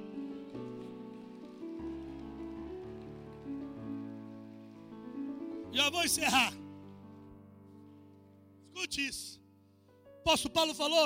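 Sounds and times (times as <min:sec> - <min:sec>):
audience applauding: 0:00.0 - 0:07.0
speech: 0:05.7 - 0:06.6, 0:08.8 - 0:09.4, 0:10.3 - 0:11.0.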